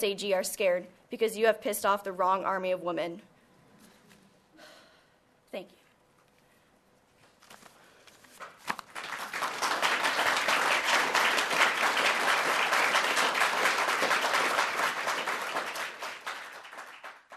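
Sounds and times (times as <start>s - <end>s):
speech: 0.0s - 3.3s, 5.5s - 5.8s
applause in a courtroom: 8.9s - 17.3s.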